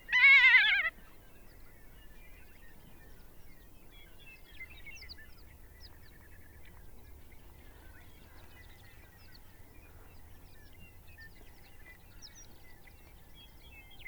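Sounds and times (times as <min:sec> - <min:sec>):
ferruginous hawk Buteo regalis hoarse quavering scream: 0:00.2 - 0:00.9.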